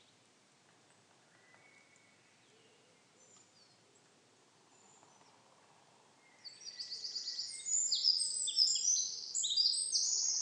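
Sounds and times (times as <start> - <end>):
Eurasian wren song: 6.2 - 10.3.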